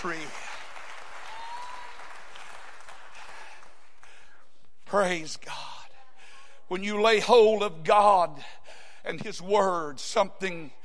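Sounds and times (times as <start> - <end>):
speech: 0.0 - 0.5, 4.9 - 5.7, 6.7 - 10.8
audience clapping hands: 0.0 - 4.4.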